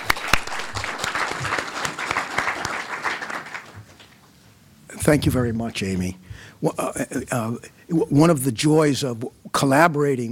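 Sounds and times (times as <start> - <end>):
audience applause: 0.0 - 4.2
speech: 5.0 - 10.3.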